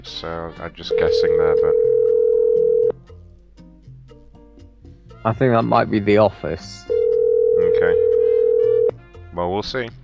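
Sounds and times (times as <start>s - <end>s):
speech: 0.0s - 1.9s, 5.2s - 7.0s, 9.3s - 10.0s
telephone dial tone: 1.0s - 2.9s, 7.0s - 8.9s.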